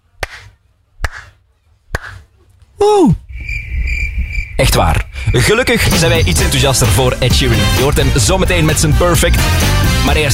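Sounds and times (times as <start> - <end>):
slow hand claps imitating lukewarm applause: 0.2 - 2.2
speech: 2.8 - 3.2, 4.6 - 10.3.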